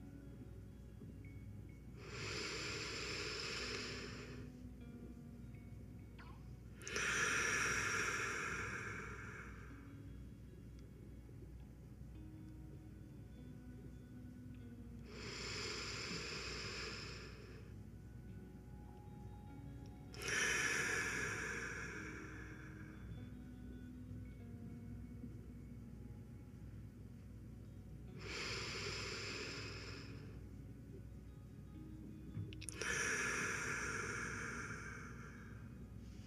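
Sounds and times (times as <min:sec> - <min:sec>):
slow deep relaxation breathing: 0:01.0 - 0:10.2, 0:13.9 - 0:17.9, 0:19.8 - 0:25.4, 0:28.1 - 0:30.6, 0:31.7 - 0:36.2.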